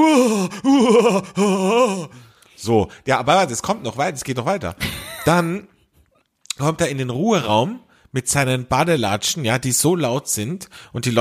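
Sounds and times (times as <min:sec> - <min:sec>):
person groaning and gasping under an ice-cold shower: 0:00.0 - 0:02.4
speech: 0:00.0 - 0:05.7, 0:06.6 - 0:11.1.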